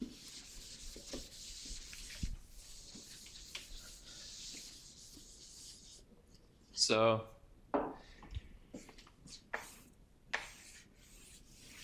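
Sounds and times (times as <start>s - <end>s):
scratchy drawing strokes drawing a conformal diagram: 0.0s - 6.1s, 9.6s - 11.8s
quiet hiss: 0.0s - 11.8s
speech: 6.9s - 7.3s.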